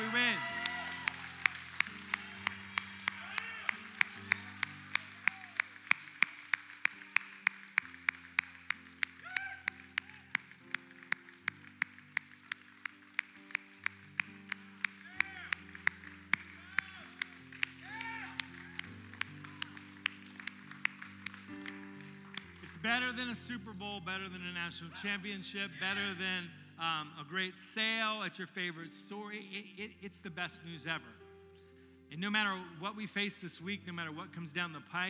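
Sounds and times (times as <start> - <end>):
audience cheering: 0.0 - 7.8, 9.2 - 10.4, 15.0 - 20.3
audience applause: 0.0 - 23.3
speech: 22.8 - 31.2, 32.2 - 35.0.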